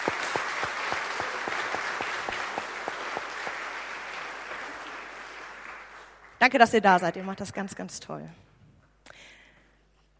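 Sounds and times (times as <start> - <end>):
audience applause for a band: 0.0 - 6.4
speech: 6.4 - 8.5.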